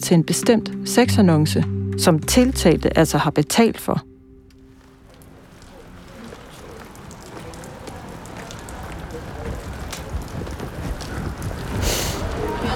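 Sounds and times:
speech: 0:00.1 - 0:04.1
heavy rain outdoors on Frederiksberg: 0:02.4 - 0:12.7.

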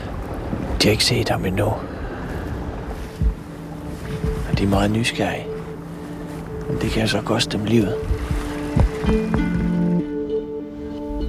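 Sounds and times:
wind noise: 0:00.0 - 0:10.2
boat motoring slowly among icebergs: 0:00.0 - 0:11.2
speech: 0:00.8 - 0:01.9, 0:04.6 - 0:05.5, 0:06.7 - 0:08.2, 0:08.8 - 0:09.7
dull thumps: 0:03.1 - 0:03.5, 0:08.0 - 0:09.9.

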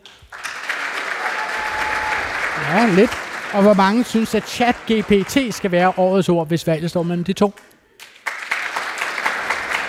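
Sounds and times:
audience applause in a school: 0:00.2 - 0:06.3, 0:08.0 - 0:09.8
speech: 0:02.7 - 0:07.7.

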